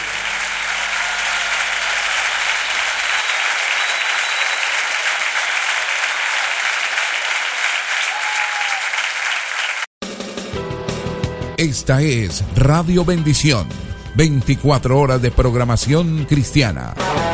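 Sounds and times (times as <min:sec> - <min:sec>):
audience applauding: 0:00.0 - 0:09.9
speech: 0:11.6 - 0:17.2.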